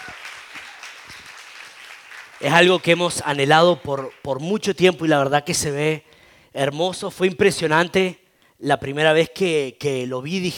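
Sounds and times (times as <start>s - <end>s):
audience applause: 0.0s - 4.2s
speech: 2.4s - 10.5s.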